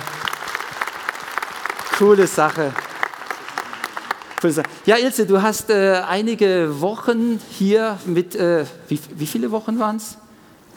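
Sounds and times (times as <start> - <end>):
audience clapping: 0.0 - 5.0
speech: 2.0 - 2.8, 4.4 - 10.2.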